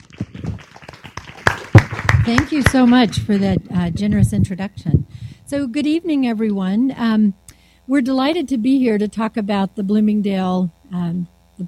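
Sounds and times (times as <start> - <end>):
audience applause: 0.0 - 3.5
speech: 2.3 - 11.6.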